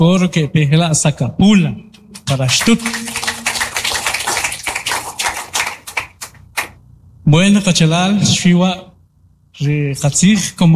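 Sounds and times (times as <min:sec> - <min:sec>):
speech: 0:00.0 - 0:03.0, 0:07.3 - 0:08.9, 0:09.6 - 0:10.7
group applauding: 0:02.2 - 0:06.8.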